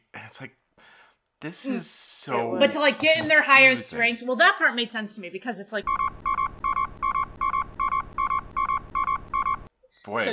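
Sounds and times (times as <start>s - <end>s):
speech: 0.3s - 0.6s, 1.4s - 6.2s, 10.1s - 10.3s
censorship beep over spoiler: 5.8s - 9.7s.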